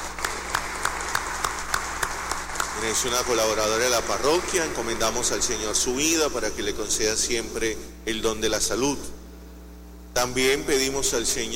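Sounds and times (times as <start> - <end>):
audience applause: 0.0 - 5.8
speech: 2.8 - 9.2, 10.2 - 11.5.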